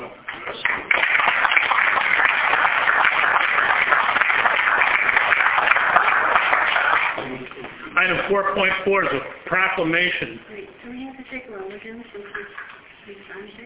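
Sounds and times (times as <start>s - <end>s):
audience applause: 0.3s - 7.5s
speech: 8.3s - 13.6s.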